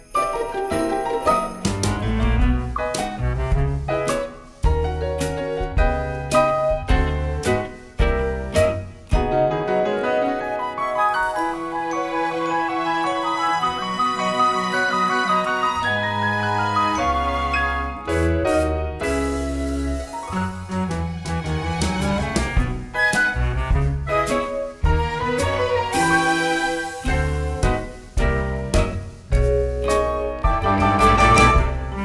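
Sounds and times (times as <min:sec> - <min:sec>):
audition accompaniment music: 0:00.0 - 0:32.0.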